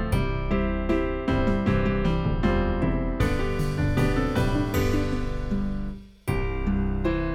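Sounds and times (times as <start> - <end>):
backing music: 0.1 - 7.1.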